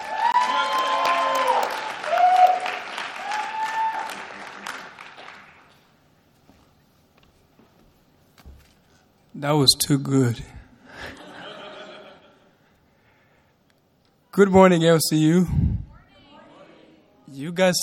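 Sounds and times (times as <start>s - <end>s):
university chapel audience clapping: 0.0s - 6.0s
speech: 9.4s - 10.5s, 14.4s - 15.7s, 17.6s - 17.8s
laughter: 10.9s - 12.7s.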